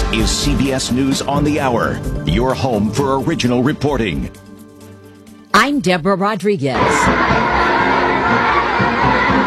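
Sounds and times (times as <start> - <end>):
speech: 0.1 - 4.5, 5.6 - 7.4
children cheering and shouting at the welcome ceremony in Beijing: 6.8 - 9.4.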